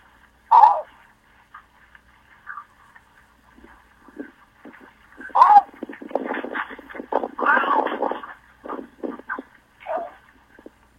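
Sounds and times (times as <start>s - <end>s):
cattle egret calling: 0.5s - 0.9s, 5.2s - 10.3s.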